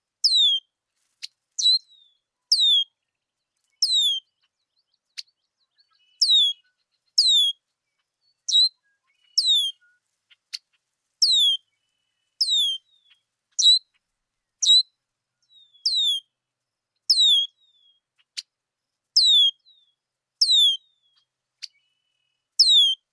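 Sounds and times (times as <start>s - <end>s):
red-winged blackbird calls: 0.2s - 0.6s, 1.6s - 2.9s, 3.8s - 4.3s, 5.2s - 7.6s, 8.5s - 10.0s, 11.2s - 11.6s, 12.4s - 13.8s, 14.6s - 14.8s, 15.4s - 16.3s, 17.1s - 18.0s, 19.2s - 21.9s, 22.6s - 23.0s.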